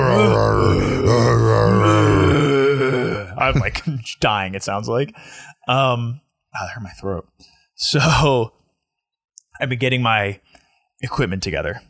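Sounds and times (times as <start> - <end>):
person imitating a growling bear: 0.0 - 3.4
speech: 3.5 - 8.6, 9.6 - 11.8.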